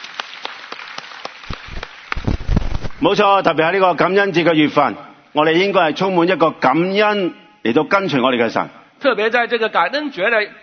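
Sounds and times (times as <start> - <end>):
church congregation applause in worship: 0.0 - 3.2
speech: 3.0 - 10.6.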